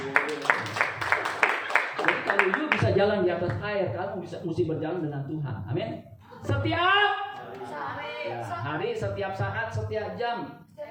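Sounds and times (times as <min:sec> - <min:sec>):
audience applause: 0:00.0 - 0:02.8
speech: 0:02.4 - 0:07.2, 0:08.2 - 0:10.7.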